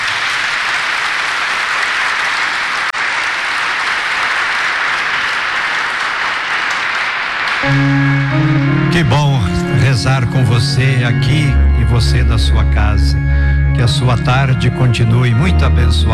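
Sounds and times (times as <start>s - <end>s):
applause: 0.0s - 8.2s
speech: 9.0s - 16.1s.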